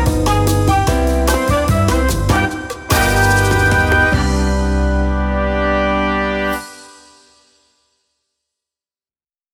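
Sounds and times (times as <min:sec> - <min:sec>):
bossa nova music: 0:00.0 - 0:07.1.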